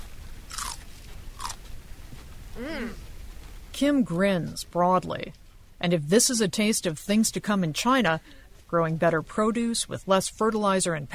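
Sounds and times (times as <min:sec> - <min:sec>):
biting into crunchy celery: 0:00.5 - 0:01.7
wet chewing: 0:00.5 - 0:01.7
speech: 0:02.6 - 0:03.0, 0:03.8 - 0:11.1.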